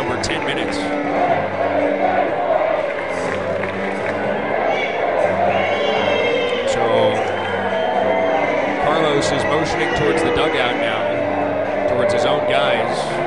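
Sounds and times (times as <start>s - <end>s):
stadium crowd chanting: 0.0s - 13.2s
high shouts: 0.8s - 13.2s
whistles: 7.0s - 10.3s.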